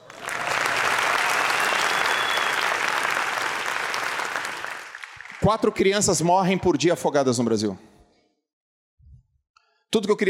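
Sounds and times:
audience applause: 0:00.0 - 0:05.9
speech: 0:05.4 - 0:07.9, 0:09.9 - 0:10.2.

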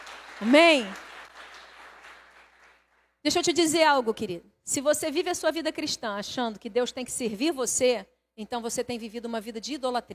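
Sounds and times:
crowd applause: 0:00.0 - 0:02.8
speech: 0:00.4 - 0:01.0, 0:03.2 - 0:10.1.

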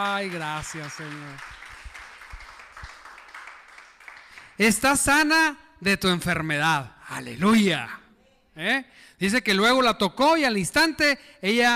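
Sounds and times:
speech: 0:00.0 - 0:01.6, 0:04.6 - 0:08.0, 0:08.6 - 0:11.7
audience applause: 0:00.0 - 0:04.6.

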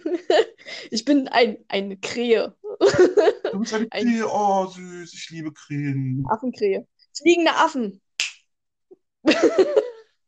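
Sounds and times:
speech: 0:00.0 - 0:08.0, 0:09.2 - 0:09.8
hand slap or clap: 0:08.2 - 0:08.4
laughter: 0:09.3 - 0:10.0.

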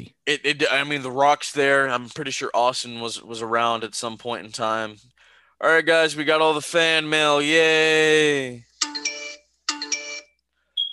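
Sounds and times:
speech: 0:00.0 - 0:09.1
smoke detector going off: 0:10.0 - 0:10.9.

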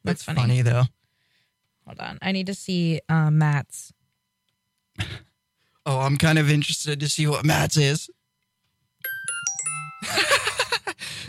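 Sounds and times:
speech: 0:00.0 - 0:01.0, 0:01.9 - 0:04.0, 0:05.0 - 0:08.2
short ding phone ringtone: 0:09.0 - 0:10.4.

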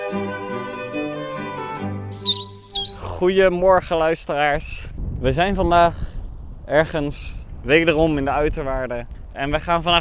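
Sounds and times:
bird chirping: 0:02.2 - 0:03.2
speech: 0:03.2 - 0:06.1, 0:06.7 - 0:09.9.

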